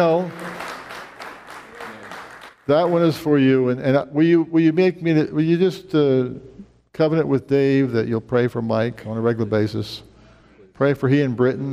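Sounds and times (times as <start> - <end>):
speech: 0.0 - 0.4, 2.7 - 10.1, 10.8 - 11.7
audience applause in a church service: 0.0 - 3.0.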